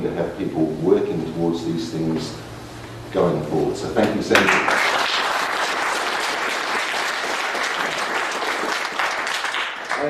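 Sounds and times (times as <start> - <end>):
speech: 0.0 - 4.9
audience applause: 4.3 - 10.0.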